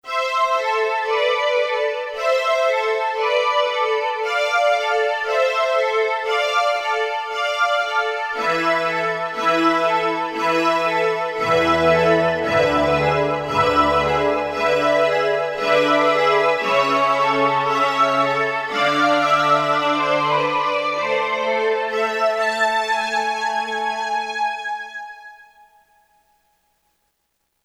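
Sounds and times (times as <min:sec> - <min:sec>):
strings: 0:00.1 - 0:25.6.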